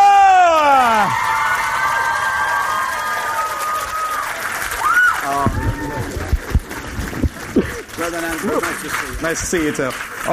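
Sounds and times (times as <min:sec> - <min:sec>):
person whooping: 0:00.0 - 0:04.2, 0:04.8 - 0:06.3
studio audience cheering and clapping: 0:00.0 - 0:10.3
speech: 0:09.2 - 0:10.3.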